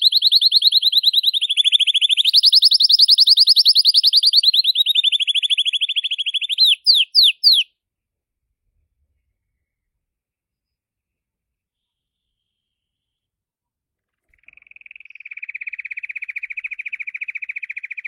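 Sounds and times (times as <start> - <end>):
blue Belgian canary singing: 0.0 - 7.7.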